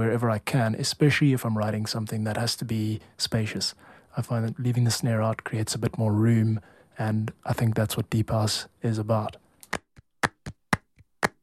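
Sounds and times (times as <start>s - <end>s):
speech: 0.0s - 9.8s
soft hand claps in a deep house track: 9.6s - 11.4s.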